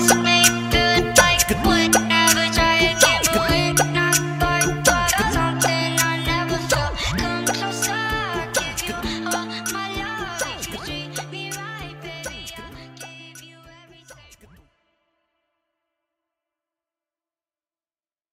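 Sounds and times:
funk remix beat: 0.0 - 13.5.

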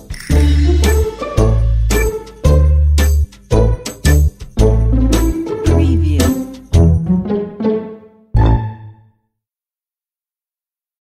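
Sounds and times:
funny spy detective pizzicato comedy stock music: 0.3 - 9.1.

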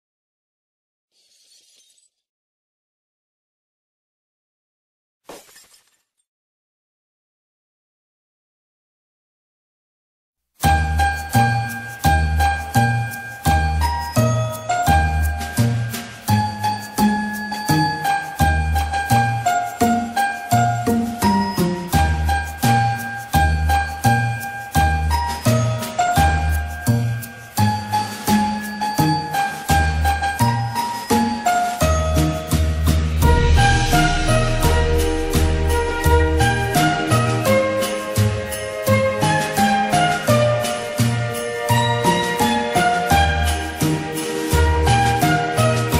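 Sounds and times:
Christmas karaoke song: 10.6 - 45.9.

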